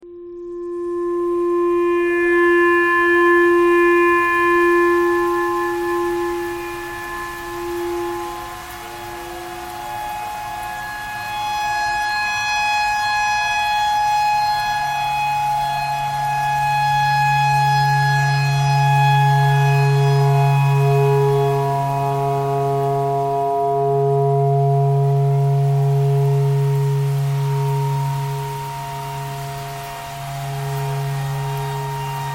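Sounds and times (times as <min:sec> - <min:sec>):
clarinet playing pentatonic tornado siren tune: 0:00.0 - 0:32.3.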